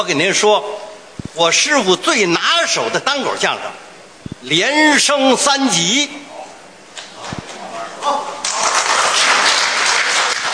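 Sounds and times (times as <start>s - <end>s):
speech: 0.0s - 6.3s
audience clapping at a solo crosstalk comedy performance: 8.4s - 10.5s.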